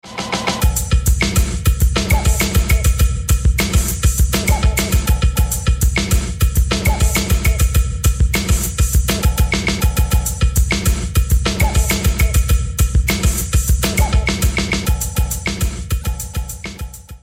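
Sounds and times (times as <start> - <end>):
music beat: 0.0 - 17.2.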